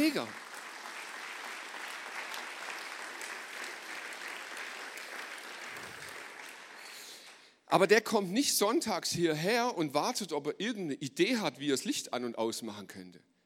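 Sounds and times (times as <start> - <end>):
speech: 0.0 - 0.5, 7.7 - 13.3
audience applause: 0.0 - 7.4.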